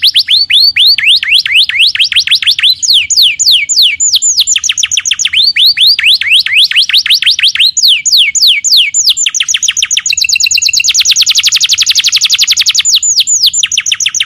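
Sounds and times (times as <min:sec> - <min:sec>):
canary song: 0:00.0 - 0:14.2.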